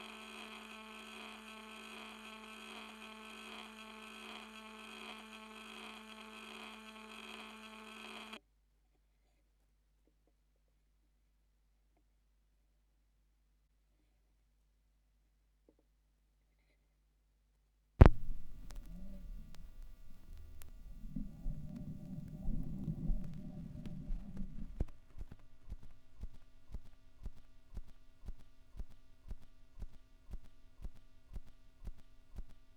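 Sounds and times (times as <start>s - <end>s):
vinyl record crackle: 0.0s - 8.4s, 18.0s - 32.5s.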